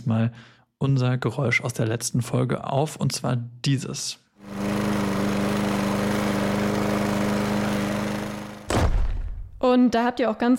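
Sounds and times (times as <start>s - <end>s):
speech: 0.0s - 4.6s, 9.6s - 10.5s
mowing machine engine droning: 4.4s - 8.7s
loud crack of a stone thrown up by mowing: 8.6s - 9.6s.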